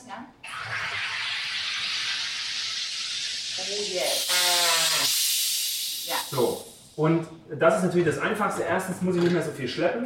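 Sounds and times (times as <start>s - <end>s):
speech: 0.1s - 0.8s, 6.1s - 10.0s
home soda maker carbonating water: 0.4s - 6.8s.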